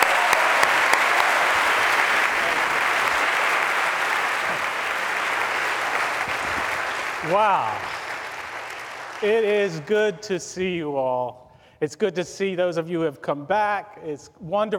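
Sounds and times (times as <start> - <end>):
college convocation audience applause welcoming a speaker to the podium: 0.0 - 10.0
speech: 7.3 - 8.0, 9.2 - 14.7.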